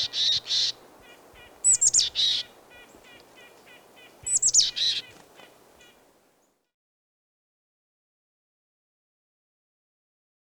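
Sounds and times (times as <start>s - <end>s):
Boreal chickadee Poecile hudsonicus calling: 0.0s - 6.1s.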